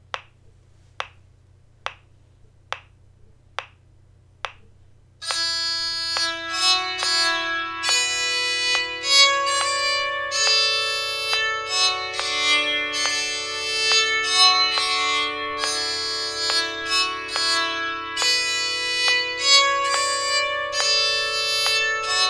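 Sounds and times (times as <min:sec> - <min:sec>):
bowed psaltery playing a folk tune: 0:05.2 - 0:22.2.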